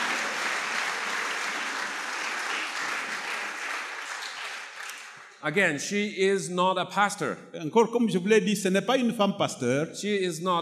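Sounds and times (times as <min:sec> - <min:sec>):
audience applause: 0:00.0 - 0:05.6
speech: 0:05.4 - 0:10.6.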